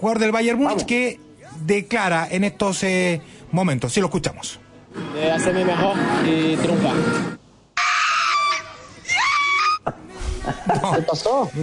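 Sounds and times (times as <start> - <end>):
speech: 0.0 - 7.4, 10.7 - 11.6
laughter: 5.3 - 6.6, 9.2 - 11.6
woman screaming wildly celebrating a Bayern Munich goal: 7.8 - 9.8.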